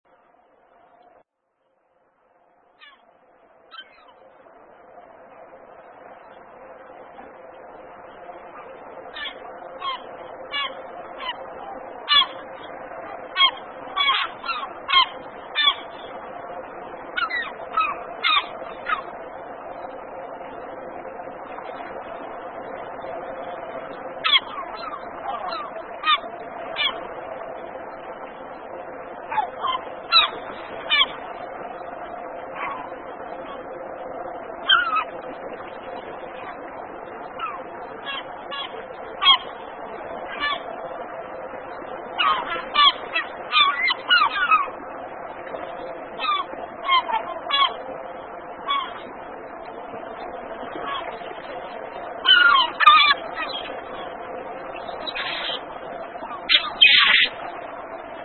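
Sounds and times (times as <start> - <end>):
seagulls at a dock: 2.8 - 3.1, 3.7 - 4.2, 8.6 - 16.1, 17.2 - 19.1, 24.2 - 27.1, 29.3 - 31.2, 32.5 - 33.6, 34.6 - 35.2, 37.4 - 39.6, 40.2 - 40.8, 42.2 - 44.8, 46.2 - 47.8, 48.6 - 49.1, 50.8 - 51.2, 52.2 - 54.0, 54.8 - 57.4.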